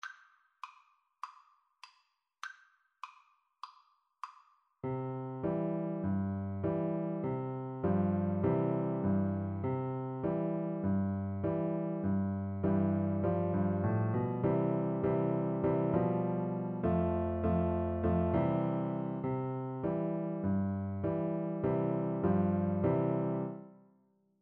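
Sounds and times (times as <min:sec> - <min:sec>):
piano duet: 0:04.8 - 0:23.7.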